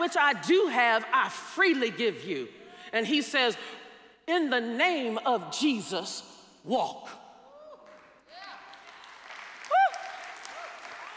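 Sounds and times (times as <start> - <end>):
speech: 0.1 - 7.2
audience clapping: 7.7 - 11.1.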